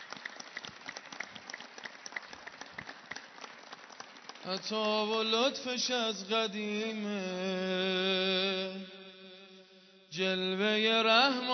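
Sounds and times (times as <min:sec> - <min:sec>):
audience clapping rhythmically at a religious gathering for Imam Hasan: 0:00.0 - 0:05.5
speech: 0:04.4 - 0:08.9, 0:10.2 - 0:11.5.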